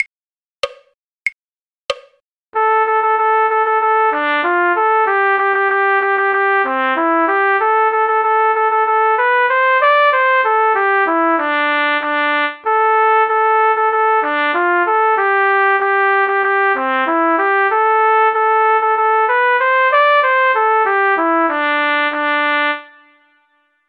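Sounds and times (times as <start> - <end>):
trumpet: 2.6 - 23.8.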